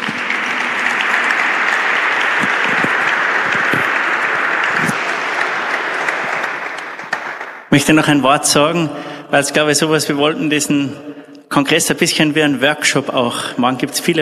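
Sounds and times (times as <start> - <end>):
audience applause: 0.0 - 7.8
speech: 7.8 - 14.2.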